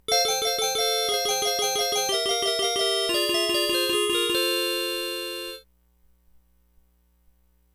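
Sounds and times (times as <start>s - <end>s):
fairy music: 0.1s - 5.6s.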